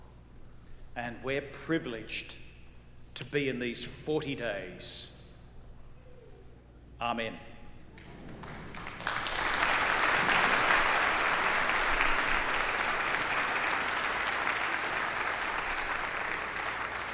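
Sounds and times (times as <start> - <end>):
speech: 1.0 - 2.4, 3.2 - 5.1, 7.0 - 7.5
audience clapping after a homily: 8.0 - 17.1.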